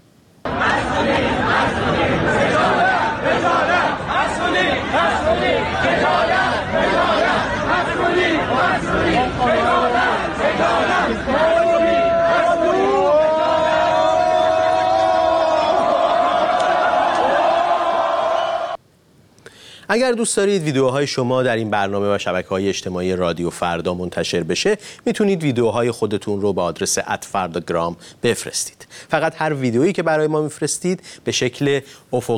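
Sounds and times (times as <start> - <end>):
protesting students at Amirkabir University chanting and shouting: 0.4 - 18.8
speech: 19.9 - 32.3.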